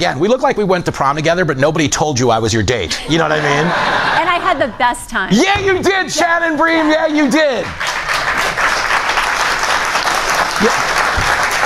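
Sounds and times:
speech: 0.0 - 8.0, 10.6 - 10.9
laughter: 2.9 - 7.6, 10.4 - 11.6
audience applause: 6.2 - 11.6.

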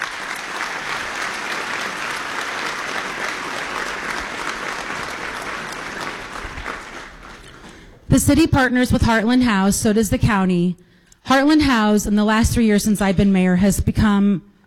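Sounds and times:
crowd clapping: 0.0 - 8.0
speech: 8.2 - 14.5.

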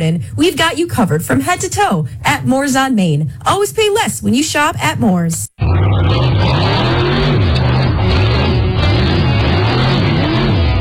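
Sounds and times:
speech: 0.0 - 6.7
race cars revving at a raceway: 5.6 - 10.8.

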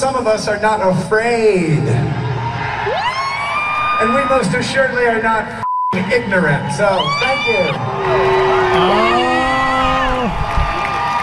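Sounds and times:
speech: 0.0 - 3.1, 4.0 - 9.4
crowd cheering and whooping: 2.2 - 4.8, 6.5 - 11.2.

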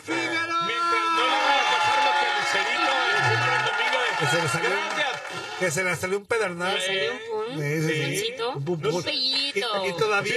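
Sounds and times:
audience applause: 1.0 - 6.0
speech: 4.3 - 5.0, 5.6 - 10.3.

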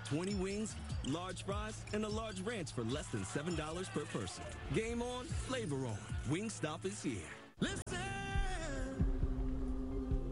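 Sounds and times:
speech: 0.1 - 7.8
human heartbeat: 8.3 - 10.3.

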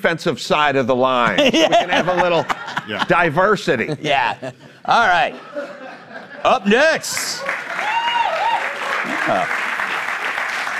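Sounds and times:
speech: 0.0 - 5.8, 6.4 - 7.7, 9.3 - 9.6
laughter: 1.2 - 7.5, 8.9 - 9.9
studio audience applause: 6.7 - 10.7
whoops and voices: 7.8 - 9.5.

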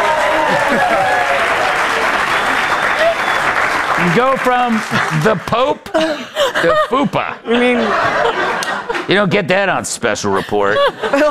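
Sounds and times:
audience applause: 0.0 - 5.8
laughter: 0.3 - 3.4, 4.0 - 9.3, 10.2 - 11.2
speech: 4.1 - 11.2.

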